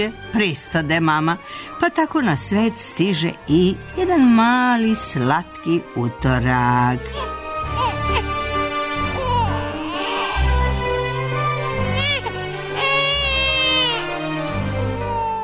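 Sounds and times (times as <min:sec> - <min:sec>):
speech: 0:00.0 - 0:07.4
baby crying: 0:07.2 - 0:08.4, 0:09.1 - 0:10.8, 0:11.8 - 0:15.4.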